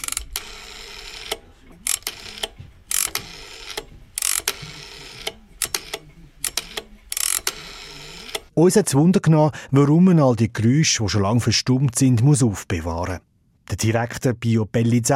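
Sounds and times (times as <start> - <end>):
old rotary telephone dial turning: 0.0 - 8.5
speech: 8.6 - 15.1.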